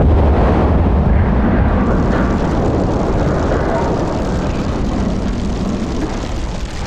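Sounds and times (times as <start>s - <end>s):
fire blast igniting a field: 0.0s - 6.8s.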